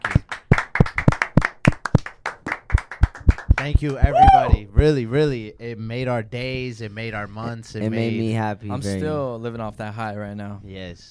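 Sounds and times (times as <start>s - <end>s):
audience clapping: 0.0s - 4.6s
speech: 3.6s - 11.0s.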